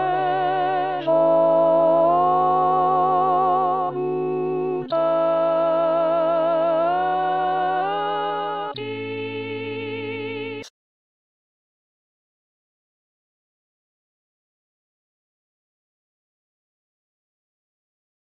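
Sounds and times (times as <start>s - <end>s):
contralto voice: 0.0s - 10.7s.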